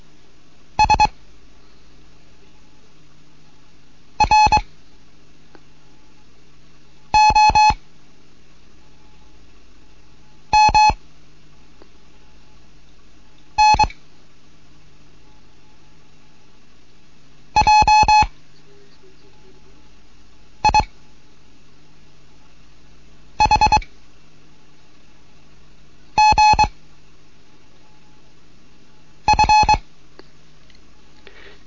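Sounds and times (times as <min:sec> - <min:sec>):
faint low hum: 0:00.0 - 0:31.6
Morse code electronic beeps: 0:00.8 - 0:01.1, 0:04.2 - 0:04.6, 0:07.2 - 0:07.8, 0:10.6 - 0:11.0, 0:13.6 - 0:14.0, 0:17.6 - 0:18.3, 0:20.6 - 0:20.9, 0:23.4 - 0:23.9, 0:26.2 - 0:26.7, 0:29.3 - 0:29.8.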